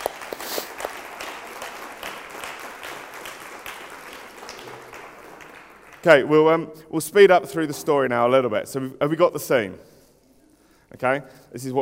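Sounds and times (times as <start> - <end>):
round of applause: 0.0 - 6.3
speech: 6.0 - 9.9, 10.9 - 11.7.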